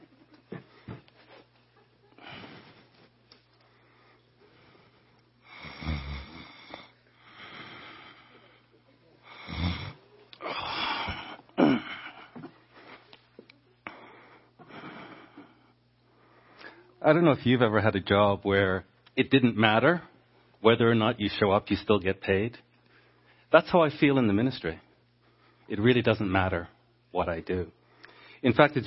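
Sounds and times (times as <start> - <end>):
person snoring while dropping off to sleep: 5.4 - 8.1, 9.3 - 12.2
speech: 17.0 - 22.7, 23.5 - 24.8, 25.7 - 27.8, 28.4 - 28.8.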